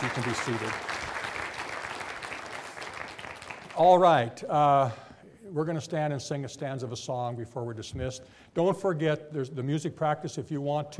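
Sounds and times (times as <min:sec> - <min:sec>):
church congregation applause welcoming new members at a morning service: 0:00.0 - 0:04.3
speech: 0:00.1 - 0:01.1, 0:03.8 - 0:10.9.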